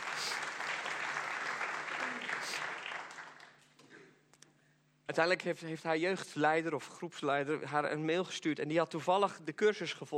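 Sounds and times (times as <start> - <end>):
audience applauding: 0.0 - 3.6
speech: 5.1 - 10.1.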